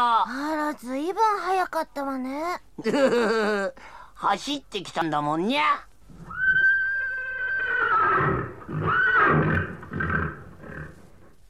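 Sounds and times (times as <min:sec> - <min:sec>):
speech: 0:00.0 - 0:05.9
horse whinnying in a long high neigh: 0:06.2 - 0:11.1
horse snorting calls: 0:07.4 - 0:11.3.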